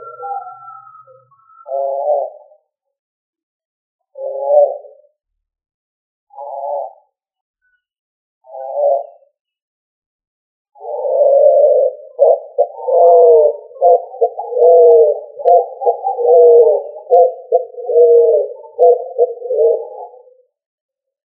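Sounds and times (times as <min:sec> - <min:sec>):
pigeon cooing: 0:00.0 - 0:02.6, 0:04.1 - 0:05.0, 0:06.3 - 0:07.1, 0:08.4 - 0:09.3, 0:10.8 - 0:20.4.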